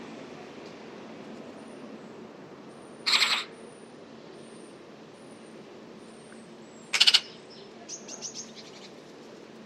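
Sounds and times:
bird giving rough pulsed pi pi pi pi calls: 3.0 - 3.6, 6.9 - 7.4.

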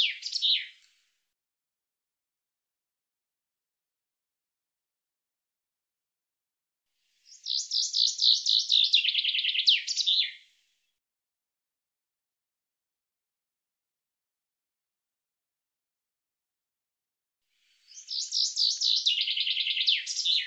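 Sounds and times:
bird trilling song: 0.0 - 0.8, 7.3 - 10.4, 17.8 - 20.4.

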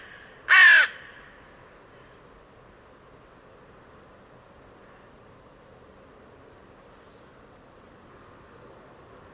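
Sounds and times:
bird giving harsh crow-like caws: 0.0 - 1.4.

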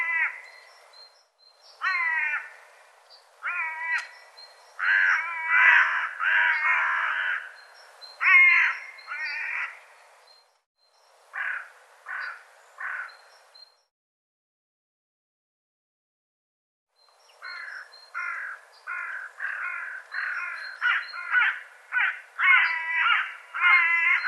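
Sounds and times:
bird calling with rough grating caws: 0.0 - 0.6, 1.8 - 2.6, 3.4 - 4.2, 4.8 - 7.6, 8.2 - 9.8, 11.3 - 13.2, 17.4 - 24.2.

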